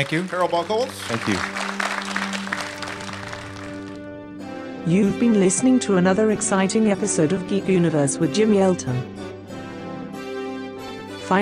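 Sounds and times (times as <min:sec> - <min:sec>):
speech: 0:00.0 - 0:01.7, 0:04.8 - 0:09.2
audience applause: 0:00.0 - 0:04.0.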